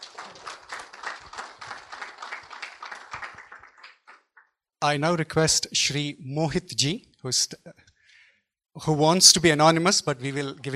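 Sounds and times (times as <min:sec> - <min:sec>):
audience applause: 0:00.0 - 0:04.3, 0:09.6 - 0:10.7
speech: 0:04.8 - 0:07.8, 0:08.8 - 0:10.7.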